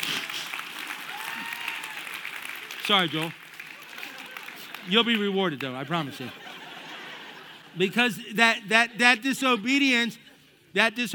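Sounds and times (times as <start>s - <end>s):
audience applause: 0.0s - 6.0s
speech: 2.9s - 3.4s, 4.8s - 6.4s, 7.7s - 10.2s, 10.8s - 11.1s
laughter: 5.8s - 8.2s.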